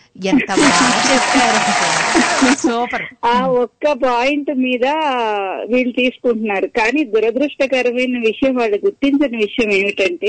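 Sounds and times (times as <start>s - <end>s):
speech: 0.2s - 10.2s
laughter: 0.4s - 3.6s
audience applause: 0.6s - 3.0s
brief voice: 2.6s - 3.6s.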